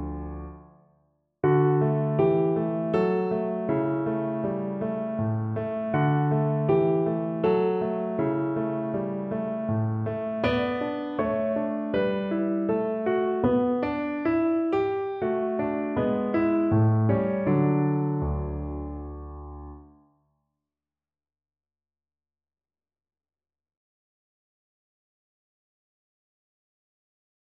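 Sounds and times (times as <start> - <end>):
piano piece: 0.0 - 20.0.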